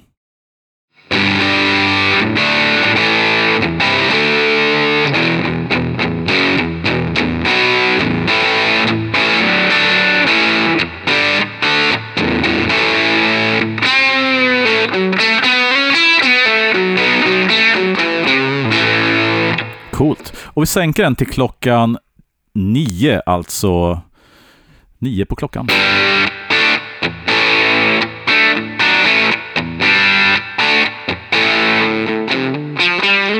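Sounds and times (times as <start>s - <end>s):
guitar through distortion pedal with fat switch engaged playing chords and bent notes: 1.0s - 19.9s, 25.7s - 33.3s
speech: 20.7s - 24.1s, 25.0s - 26.3s.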